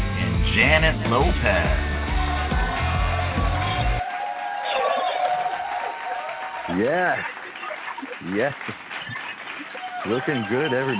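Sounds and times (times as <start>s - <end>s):
burst of music: 0.0s - 4.0s
studio audience applause and cheering: 0.0s - 10.9s
speech: 0.6s - 1.9s, 6.8s - 7.4s, 8.0s - 9.2s, 10.0s - 10.9s.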